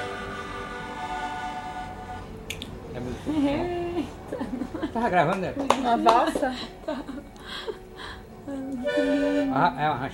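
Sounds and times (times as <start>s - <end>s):
gaita bagpipe: 0.0s - 3.9s, 7.5s - 10.0s
laughter: 3.3s - 7.8s.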